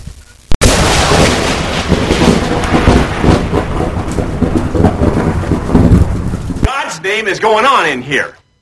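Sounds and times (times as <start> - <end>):
rocket blasting off after a countdown: 0.6 - 6.7
speech: 7.0 - 8.4.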